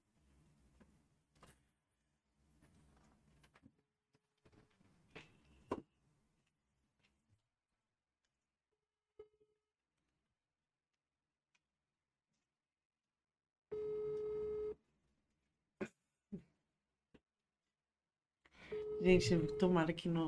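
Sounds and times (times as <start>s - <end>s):
phone call ringing on speakerphone: 13.7s - 14.7s, 18.7s - 19.8s
speech: 15.8s - 16.5s, 19.0s - 20.2s.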